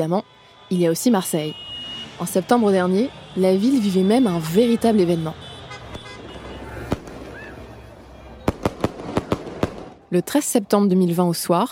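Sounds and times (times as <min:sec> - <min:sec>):
speech: 0:00.0 - 0:05.4, 0:10.1 - 0:11.7
fireworks exploding in the sky over Marseille after an OM win: 0:06.2 - 0:10.1.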